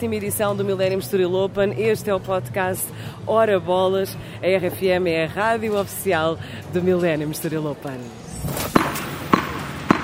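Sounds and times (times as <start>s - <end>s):
speech: 0.0s - 8.6s
tennis ball bouncing: 8.7s - 10.0s.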